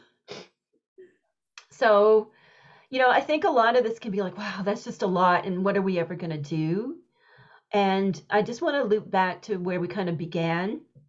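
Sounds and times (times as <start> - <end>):
sneeze: 0.3 - 0.6
speech: 1.8 - 7.0, 7.7 - 10.9.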